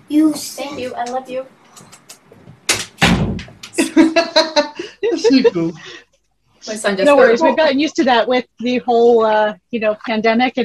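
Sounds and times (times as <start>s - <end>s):
speech: 0.1s - 2.0s, 4.2s - 4.6s, 5.2s - 6.0s, 6.6s - 10.6s
door being shut: 2.6s - 3.7s
laughter: 3.8s - 6.0s.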